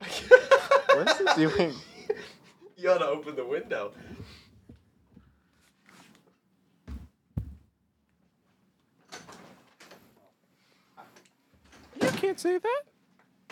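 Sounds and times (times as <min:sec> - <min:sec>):
laughter: 0:00.0 - 0:02.6
speech: 0:01.0 - 0:01.9, 0:02.8 - 0:04.4, 0:12.2 - 0:12.9
falling tree branch thumping: 0:06.9 - 0:07.6.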